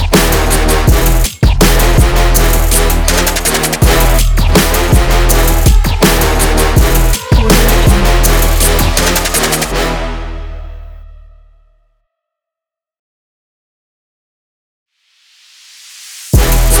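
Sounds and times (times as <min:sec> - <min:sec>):
aggressive sport trap music: 0:00.0 - 0:11.1, 0:16.4 - 0:16.7.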